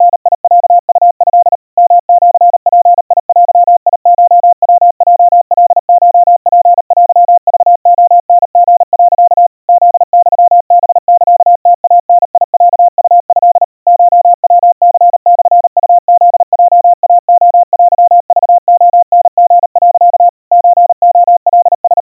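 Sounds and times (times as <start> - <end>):
crispy 700 Hz Morse code tones at 140 cpm: 0.0 - 22.0.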